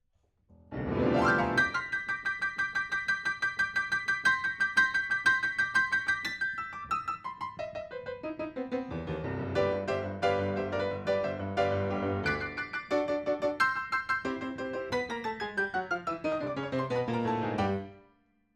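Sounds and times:
rock and roll piano: 0:00.7 - 0:18.0.

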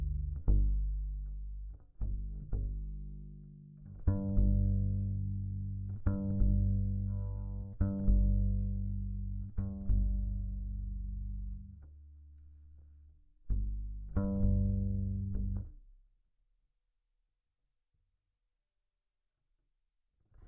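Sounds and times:
bass guitar recorded by direct input: 0:00.0 - 0:16.0.

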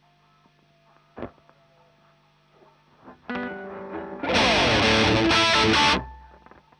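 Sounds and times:
guitar through a Marshall amplifier: 0:03.2 - 0:06.7.

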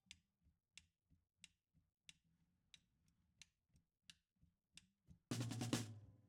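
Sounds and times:
snare drum: 0:05.3 - 0:06.1.

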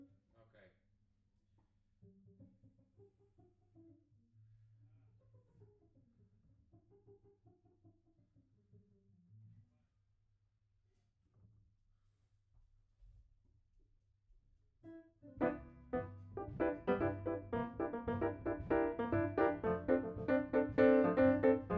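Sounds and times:
piano note B: 0:15.4 - 0:21.7.

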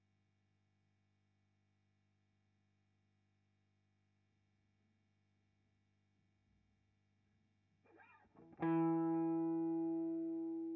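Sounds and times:
guitar recorded with Royer microphone: 0:07.9 - 0:10.7.

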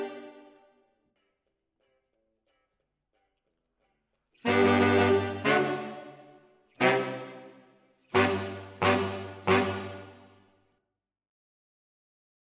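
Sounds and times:
saxophones playing: 0:00.0 - 0:00.5, 0:04.4 - 0:10.4.

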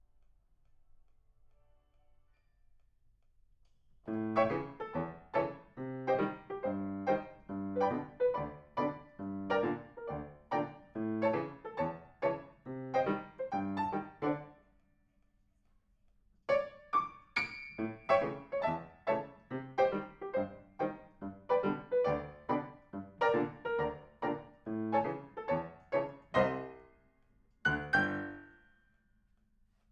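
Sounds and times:
piano: 0:04.0 - 0:14.6, 0:16.5 - 0:28.8.

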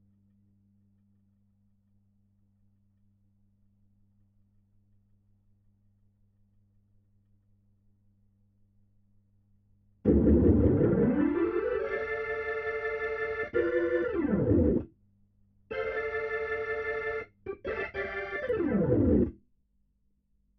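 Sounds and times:
Hammond organ: 0:10.1 - 0:14.8, 0:15.7 - 0:19.3.

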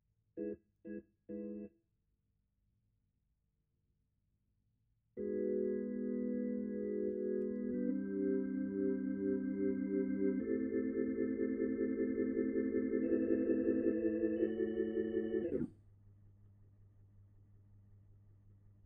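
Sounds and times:
Hammond organ: 0:00.4 - 0:01.7, 0:05.2 - 0:15.7.

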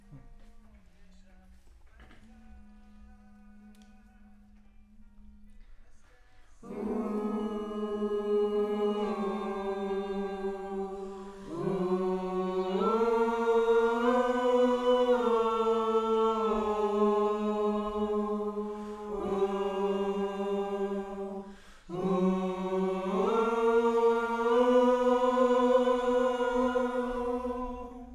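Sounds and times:
choir singing: 0:06.6 - 0:28.1.

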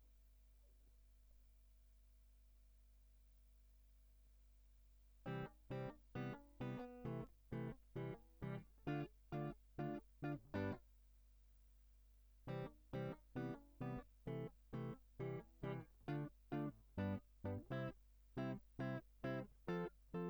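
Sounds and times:
guitar line: 0:05.3 - 0:10.8, 0:12.5 - 0:20.2.

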